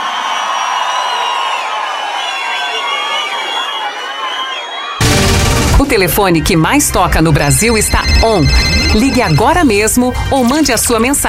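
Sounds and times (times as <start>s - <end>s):
crowd cheering and whooping: 0.0s - 6.5s
speech: 5.9s - 11.2s.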